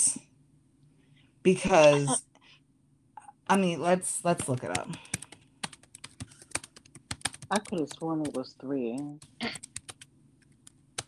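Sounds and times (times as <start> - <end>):
speech: 1.4 - 2.3, 3.5 - 5.2, 7.5 - 9.7
typing on a computer keyboard: 4.4 - 11.0.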